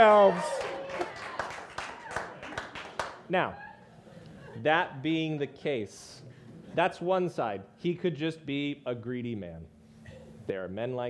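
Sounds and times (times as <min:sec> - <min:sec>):
speech: 0:00.0 - 0:00.8, 0:03.3 - 0:03.6, 0:04.6 - 0:09.7, 0:10.5 - 0:11.0
sparse hand clapping: 0:00.0 - 0:03.2.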